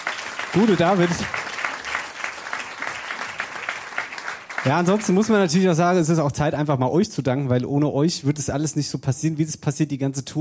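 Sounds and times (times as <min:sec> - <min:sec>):
audience applause: 0:00.0 - 0:05.6
speech: 0:00.5 - 0:01.4, 0:04.6 - 0:10.4.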